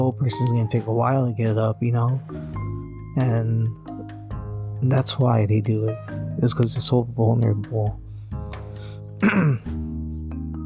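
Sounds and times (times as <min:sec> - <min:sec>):
speech: 0:00.1 - 0:02.6, 0:03.2 - 0:03.9, 0:04.8 - 0:08.0, 0:09.2 - 0:09.9
person coughing: 0:09.2 - 0:09.8.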